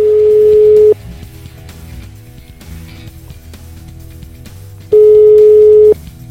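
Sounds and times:
telephone ringback tone on an outgoing call: 0.0s - 1.0s, 4.9s - 6.0s.

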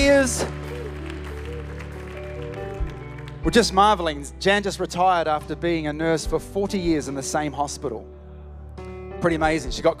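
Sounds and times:
audience clapping: 0.0s - 4.1s
speech: 3.4s - 8.2s, 9.2s - 9.9s.

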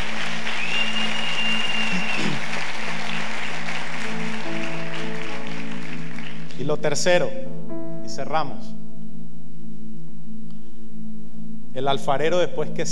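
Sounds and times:
applause: 0.0s - 6.7s
speech: 6.7s - 8.8s, 11.8s - 12.9s.

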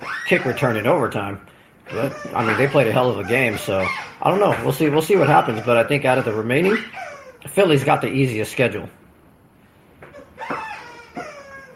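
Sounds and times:
Golden Retriever squeaking a chew toy: 0.0s - 1.1s, 1.9s - 7.6s, 10.1s - 11.7s
speech: 0.3s - 9.0s
low hiss: 0.4s - 10.4s.

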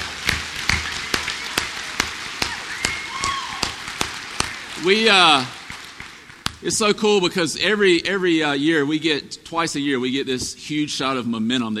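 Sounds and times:
evenly paced audience clapping welcoming students: 0.0s - 7.0s
speech: 4.8s - 5.6s, 6.6s - 11.7s.

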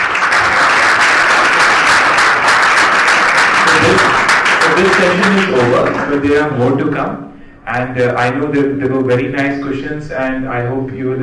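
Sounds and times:
audience applause: 0.0s - 6.5s
speech: 4.8s - 11.2s.

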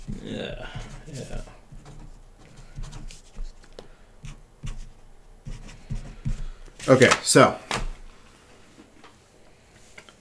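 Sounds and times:
scratchy handwriting strokes while jotting a note: 0.0s - 7.2s
speech: 0.3s - 1.6s, 6.9s - 7.6s.

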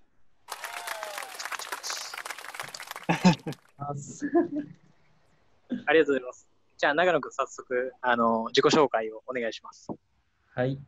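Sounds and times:
applause welcoming a guest: 0.5s - 3.7s
laughter: 0.7s - 4.7s
speech: 3.2s - 4.9s, 5.9s - 10.8s.

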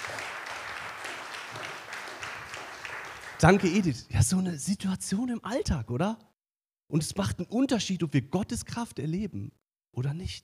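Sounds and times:
applause: 0.0s - 4.1s
speech: 3.4s - 6.3s, 6.9s - 10.4s.

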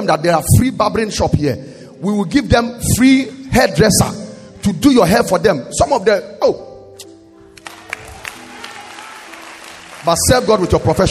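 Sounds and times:
speech: 0.0s - 6.7s, 10.0s - 11.0s
audience clapping: 7.5s - 11.0s.

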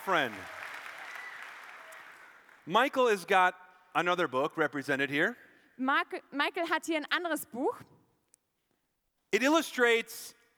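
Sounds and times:
speech: 0.0s - 0.6s, 2.6s - 7.9s, 9.3s - 10.4s
audience applause: 0.0s - 2.7s.

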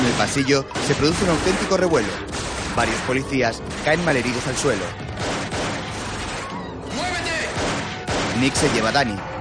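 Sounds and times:
gunfire from a shootout in an action thriller film: 0.0s - 6.5s, 7.4s - 9.0s
speech: 0.2s - 5.1s, 8.4s - 9.3s.

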